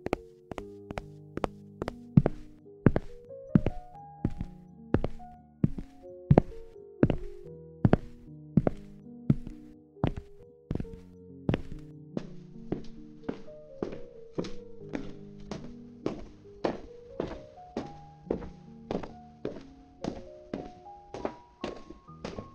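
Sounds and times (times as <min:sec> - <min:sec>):
human footsteps: 0:00.0 - 0:22.5.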